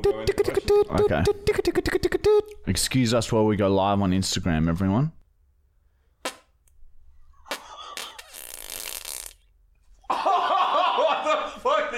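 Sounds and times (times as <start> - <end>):
speech: 0.0 - 5.2
long raspy fart: 6.2 - 6.5, 7.5 - 9.5
laughter: 10.0 - 11.9.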